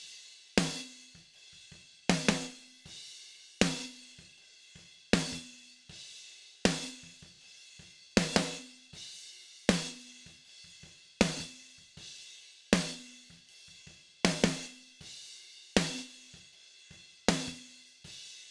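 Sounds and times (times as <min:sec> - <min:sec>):
snare drum: 0:02.1 - 0:02.7, 0:03.6 - 0:04.1, 0:05.2 - 0:05.5, 0:06.7 - 0:07.3, 0:08.2 - 0:08.8, 0:09.7 - 0:11.8, 0:12.8 - 0:14.9, 0:15.8 - 0:16.5, 0:17.3 - 0:17.8.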